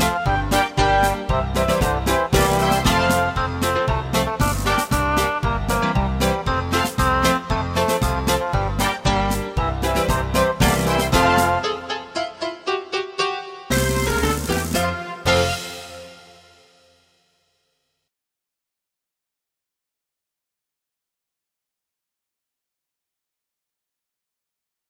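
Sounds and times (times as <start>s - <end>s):
instrumental music: 0.0s - 17.6s.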